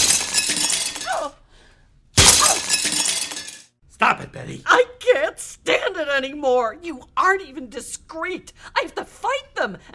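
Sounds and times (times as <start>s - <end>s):
window glass shattering: 0.0s - 1.2s, 2.2s - 3.7s
speech: 4.4s - 9.9s.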